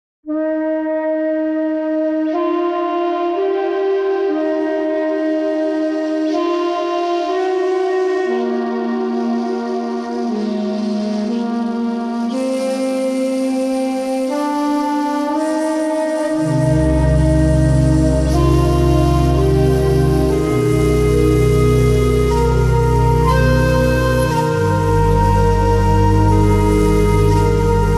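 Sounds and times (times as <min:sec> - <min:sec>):
shakuhachi: 0:00.3 - 0:27.9.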